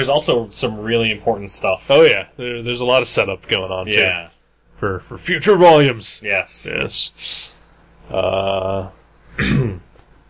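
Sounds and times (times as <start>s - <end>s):
speech: 0.0s - 9.8s
person clearing throat: 9.3s - 10.0s.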